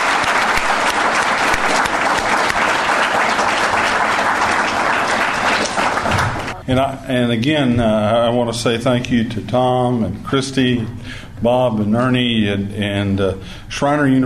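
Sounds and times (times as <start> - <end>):
audience applause: 0.0 - 6.6
speech: 6.7 - 14.2.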